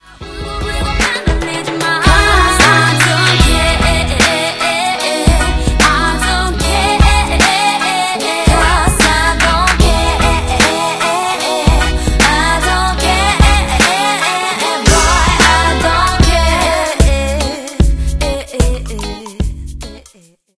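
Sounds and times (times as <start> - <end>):
reggae music: 0.0 - 20.3.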